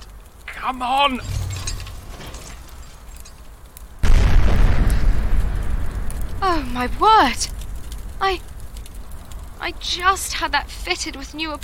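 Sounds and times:
speech: 0.6 - 1.4, 6.4 - 7.6, 8.2 - 8.5, 9.6 - 11.6
car explosion: 1.0 - 9.2.

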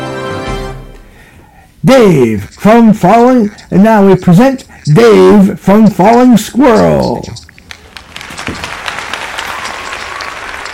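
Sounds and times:
speech: 1.9 - 7.4
audience clapping: 7.5 - 10.7.

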